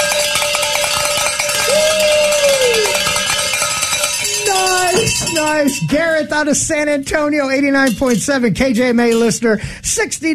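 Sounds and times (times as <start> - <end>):
pledge drive bell ringing: 0.0 - 6.4
speech: 5.5 - 10.3.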